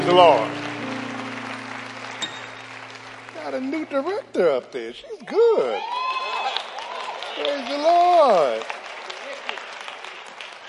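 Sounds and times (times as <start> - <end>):
audience clapping for choir: 0.0 - 4.8, 5.6 - 10.6
speech: 0.1 - 0.6, 3.5 - 6.0, 7.4 - 8.8.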